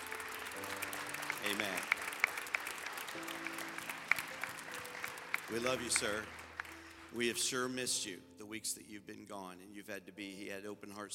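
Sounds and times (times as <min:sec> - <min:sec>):
church congregation applauding a member returning after open heart surgery: 0:00.0 - 0:07.8
speech: 0:01.4 - 0:02.0, 0:05.5 - 0:06.4, 0:07.1 - 0:11.1.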